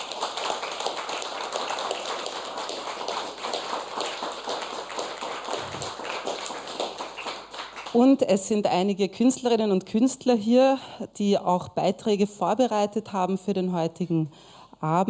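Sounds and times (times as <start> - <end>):
audience applauding: 0.0 - 8.0
speech: 7.9 - 15.0.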